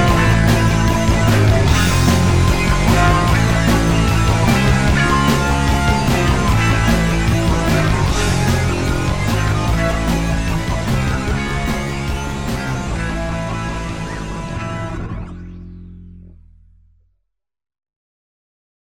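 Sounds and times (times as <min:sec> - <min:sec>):
instrumental music: 0:00.0 - 0:14.6.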